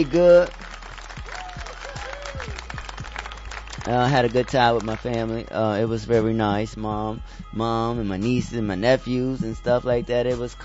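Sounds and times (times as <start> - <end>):
speech: 0.0 - 0.7, 3.9 - 10.6
crowd clapping: 0.0 - 5.5.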